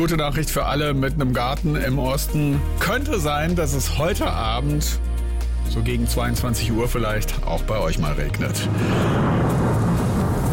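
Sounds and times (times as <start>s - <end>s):
speech: 0.0s - 9.4s
thunder: 8.6s - 10.5s.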